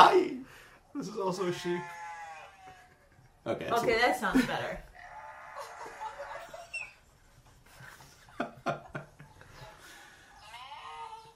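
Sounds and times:
speech: 1.0s - 2.0s, 3.4s - 4.9s
goat bleating: 1.4s - 3.2s, 4.9s - 7.0s, 10.4s - 11.3s
laughter: 3.6s - 4.8s, 5.5s - 10.0s.

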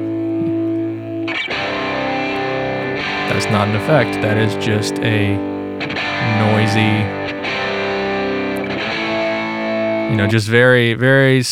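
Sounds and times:
buzz: 0.0s - 10.4s
distorted guitars through guitar amp simulators: 0.0s - 10.4s
speech: 3.3s - 7.2s, 10.1s - 11.4s.

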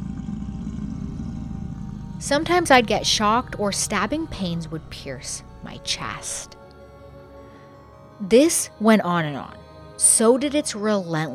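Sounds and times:
deep menacing growl: 0.0s - 7.4s
speech: 2.2s - 6.6s, 8.2s - 11.3s.

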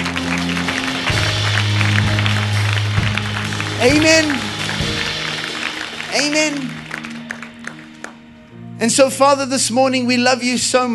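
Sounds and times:
audience clapping: 0.0s - 8.5s
speech: 3.8s - 4.5s, 6.2s - 6.7s, 8.8s - 10.9s.

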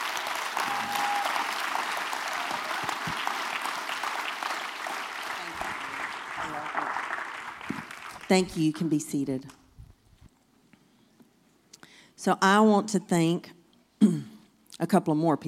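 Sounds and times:
audience applause: 0.0s - 8.4s
speech: 8.3s - 9.6s, 12.2s - 13.6s, 14.9s - 15.4s.

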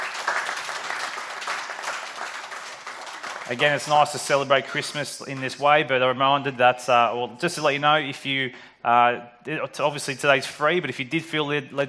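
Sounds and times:
audience applause: 0.0s - 4.4s
speech: 3.5s - 11.8s.

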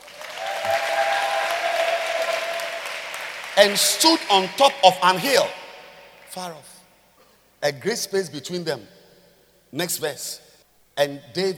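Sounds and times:
audience clapping: 0.0s - 6.4s
speech: 3.6s - 5.6s, 6.3s - 6.7s, 7.6s - 9.0s, 9.7s - 10.4s, 11.0s - 11.5s.

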